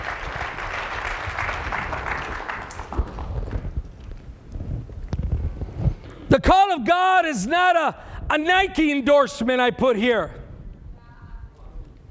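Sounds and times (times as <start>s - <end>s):
audience clapping: 0.0s - 4.2s
speech: 6.4s - 10.4s.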